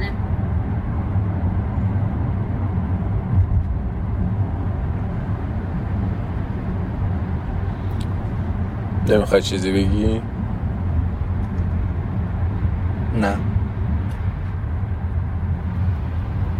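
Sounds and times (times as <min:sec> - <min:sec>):
car engine rumble heard from inside the car in a drama: 0:00.0 - 0:16.5
road hum: 0:00.0 - 0:16.5
speech: 0:09.1 - 0:10.2.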